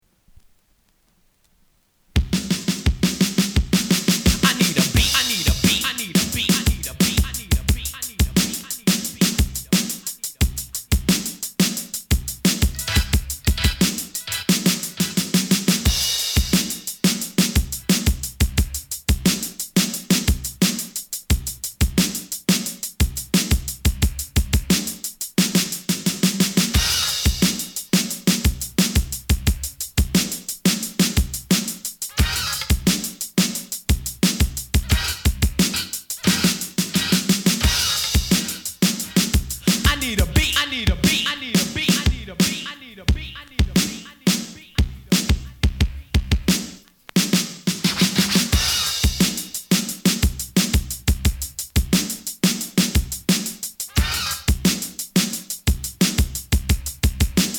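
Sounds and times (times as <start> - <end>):
instrumental beat: 2.2 - 57.5.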